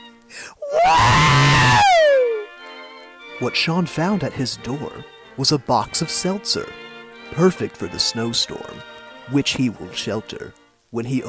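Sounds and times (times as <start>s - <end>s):
man shouting in surprise: 0.6s - 2.5s
speech: 3.4s - 11.2s.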